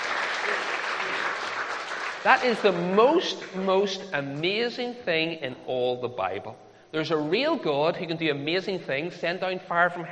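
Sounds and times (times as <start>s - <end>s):
audience clapping: 0.0s - 3.4s
speech: 2.2s - 10.1s.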